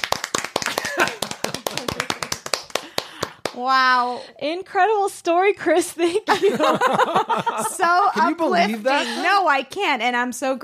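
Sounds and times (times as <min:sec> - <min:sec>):
hand clapping: 0:00.0 - 0:03.7
laughter: 0:00.7 - 0:02.3, 0:06.3 - 0:09.4
speech: 0:03.6 - 0:10.6.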